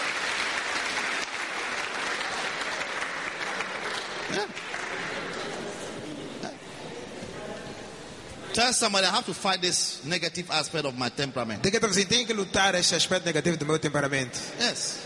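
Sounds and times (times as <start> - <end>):
church congregation applause: 0.0 - 5.9
speech: 4.3 - 4.8, 8.6 - 15.0.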